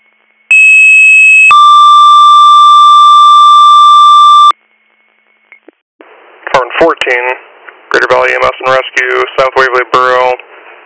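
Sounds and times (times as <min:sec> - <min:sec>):
two-tone emergency dispatch alert: 0:00.5 - 0:04.6
speech: 0:06.8 - 0:07.4, 0:08.1 - 0:10.4.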